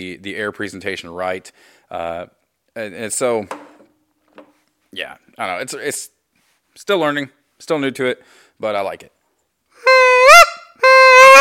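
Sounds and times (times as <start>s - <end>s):
speech: 0.0s - 3.6s, 4.9s - 6.2s, 6.8s - 9.2s
goose call blown for honk: 9.8s - 11.3s.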